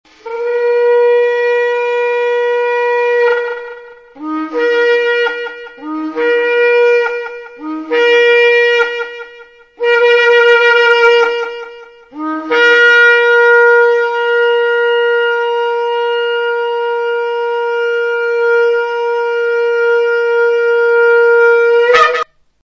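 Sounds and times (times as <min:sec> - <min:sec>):
shofar blasts: 0:00.1 - 0:22.5.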